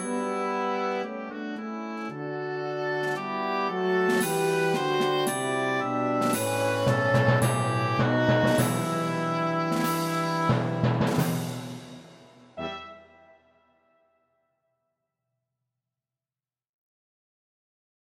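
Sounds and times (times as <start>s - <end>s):
oboe melody: 0.0s - 11.1s, 12.6s - 14.2s.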